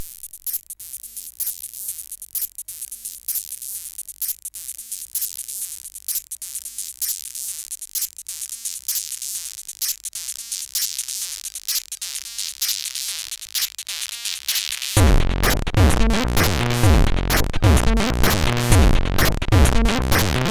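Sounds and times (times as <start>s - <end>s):
SID CSG 8580R5 chiptune song loop: 15.0s - 20.5s.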